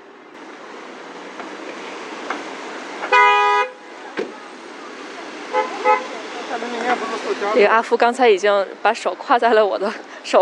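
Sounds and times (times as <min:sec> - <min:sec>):
traffic rumble: 0:00.0 - 0:10.4
car horn honking: 0:03.0 - 0:03.9, 0:05.4 - 0:06.3
speech: 0:06.6 - 0:10.4.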